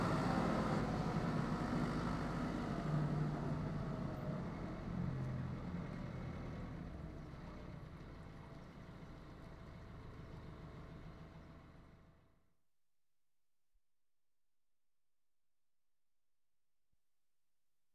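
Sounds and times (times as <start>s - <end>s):
Ford 7610 tractor: 0.0s - 12.3s.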